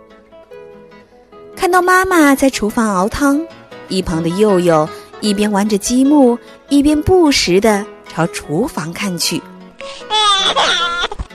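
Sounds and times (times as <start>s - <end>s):
speech: 1.6s - 11.0s
baby crying after waking up: 9.8s - 11.3s.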